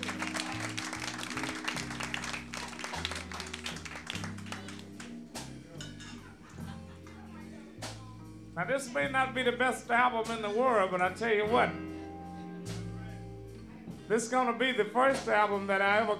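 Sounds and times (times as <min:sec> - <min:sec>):
audience applause: 0:00.0 - 0:06.0
laughter: 0:00.0 - 0:07.9
speech: 0:08.6 - 0:11.9, 0:14.1 - 0:16.1.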